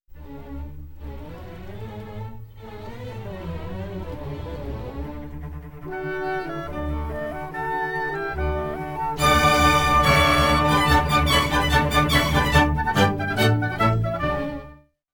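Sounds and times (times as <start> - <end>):
orchestral music recorded anechoic: 4.6 - 14.8.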